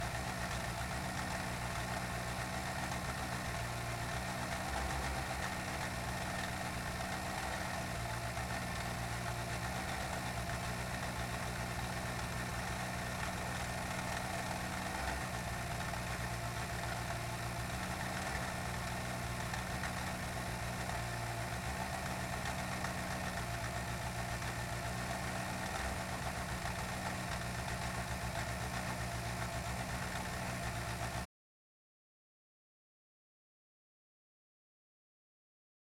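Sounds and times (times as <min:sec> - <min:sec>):
Skoda Fabia R5 rally car engine idling onboard: 0:00.1 - 0:31.2.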